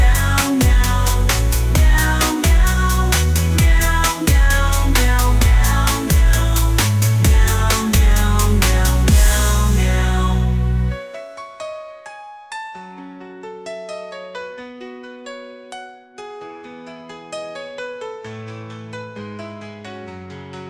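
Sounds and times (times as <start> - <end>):
synthwave music: 0.0 - 12.0.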